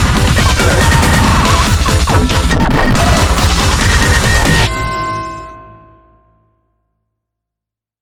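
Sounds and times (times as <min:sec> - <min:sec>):
Christmas rave music: 0:00.0 - 0:05.6.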